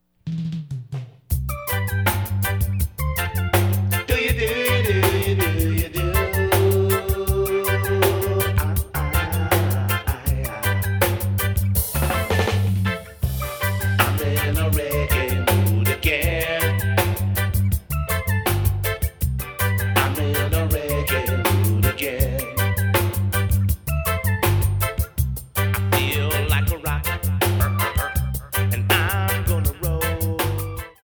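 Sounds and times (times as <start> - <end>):
reggae music: 0.3 - 31.0.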